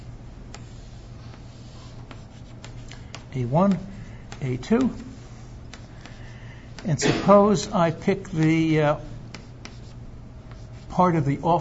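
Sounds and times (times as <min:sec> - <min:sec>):
scratching of a lattice net diagram being drawn: 0:00.5 - 0:06.3, 0:09.3 - 0:11.1
speech: 0:03.4 - 0:05.1, 0:06.8 - 0:09.1, 0:11.0 - 0:11.6.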